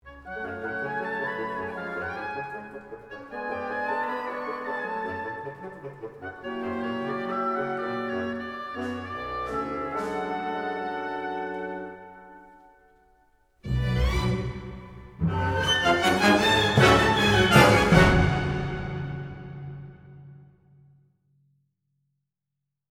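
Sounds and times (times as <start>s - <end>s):
mysterious cheeky music: 0.1s - 12.7s, 13.6s - 20.4s.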